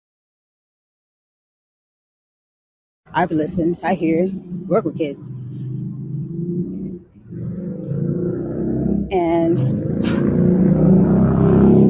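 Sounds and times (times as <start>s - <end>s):
speech: 3.1s - 5.4s, 9.1s - 10.5s
motorcycle passing by: 3.2s - 11.8s.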